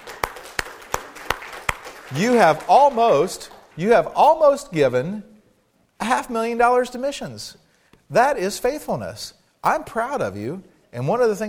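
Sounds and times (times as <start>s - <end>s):
slow hand claps: 0.0s - 4.4s
speech: 2.1s - 5.3s, 6.0s - 11.4s.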